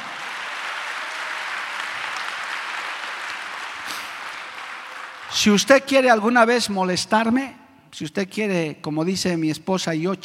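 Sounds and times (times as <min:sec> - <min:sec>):
audience applause: 0:00.0 - 0:05.7
speech: 0:05.3 - 0:10.2.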